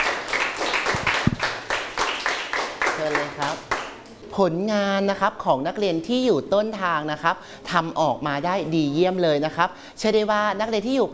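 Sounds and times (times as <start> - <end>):
students clapping for a classmate in a classroom: 0.0 - 4.1
speech: 3.0 - 3.7, 4.3 - 11.1.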